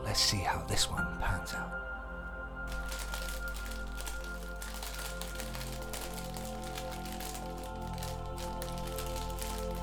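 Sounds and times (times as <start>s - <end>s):
speech: 0.1s - 1.9s
pickled onion flavour crisps crunching: 2.7s - 9.8s.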